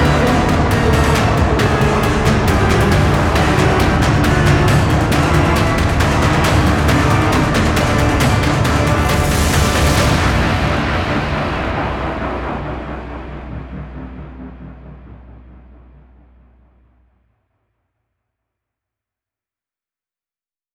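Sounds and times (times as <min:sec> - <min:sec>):
combat sounds: 0:00.0 - 0:11.7.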